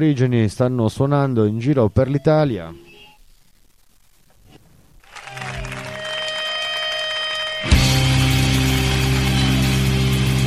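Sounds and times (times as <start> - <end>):
speech: 0.0 - 2.8
audience applause: 5.0 - 10.4.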